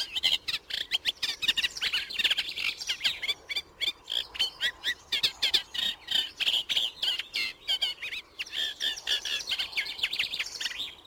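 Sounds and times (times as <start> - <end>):
Eurasian reed warbler singing: 0.0 - 11.0.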